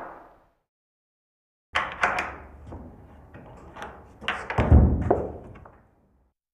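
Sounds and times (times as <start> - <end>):
prison locks and bolts opening: 1.8 - 5.8.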